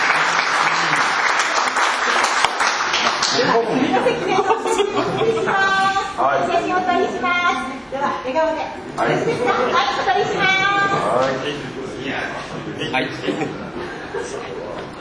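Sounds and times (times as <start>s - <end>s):
laughter: 0.0s - 2.2s, 3.0s - 6.1s, 9.1s - 10.8s, 12.3s - 14.9s
audience applause at a formal gathering: 0.0s - 3.7s
people talking: 3.0s - 14.9s.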